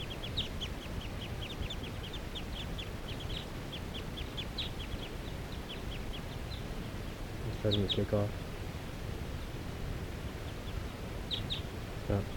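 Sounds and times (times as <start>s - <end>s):
wild birds chirping: 0.0s - 8.6s, 9.2s - 12.3s
low rumble: 0.0s - 12.3s
speech: 7.6s - 8.4s, 12.1s - 12.3s.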